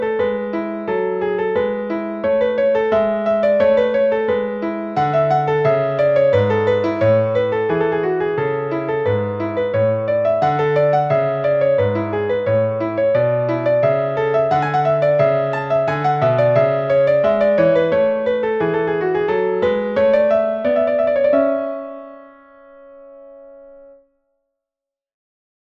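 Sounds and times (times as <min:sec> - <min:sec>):
solo piano piece: 0:00.0 - 0:24.1.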